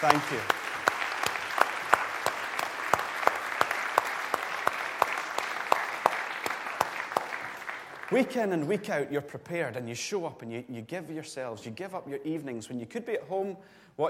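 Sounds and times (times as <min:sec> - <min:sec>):
speech: 0:00.0 - 0:00.6, 0:08.1 - 0:14.0
audience applause: 0:00.0 - 0:08.4.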